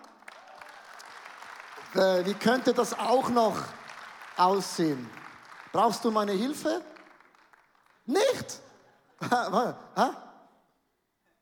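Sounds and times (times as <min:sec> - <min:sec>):
audience applause: 0:00.0 - 0:08.6
speech: 0:01.9 - 0:03.8, 0:04.4 - 0:06.9, 0:08.1 - 0:08.6, 0:09.2 - 0:10.2
laughter: 0:08.8 - 0:10.2.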